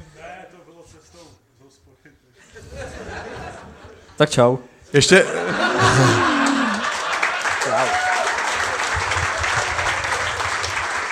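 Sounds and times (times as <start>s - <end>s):
speech: 0.9s - 6.3s
laughter: 2.4s - 4.2s, 5.0s - 8.2s
audience applause: 5.5s - 11.1s.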